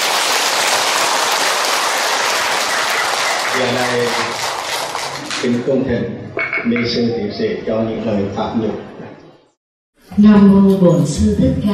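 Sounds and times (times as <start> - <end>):
crowd clapping: 0.0 - 5.7
speech: 3.6 - 4.5, 5.4 - 9.0, 10.2 - 11.7.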